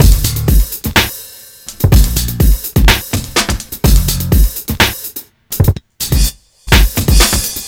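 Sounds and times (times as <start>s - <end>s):
old school breakbeat drums: 0.0s - 7.6s.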